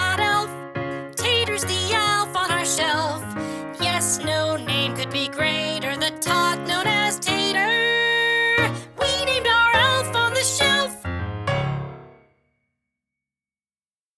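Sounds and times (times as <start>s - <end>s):
high guide vocal: 0.0s - 11.1s.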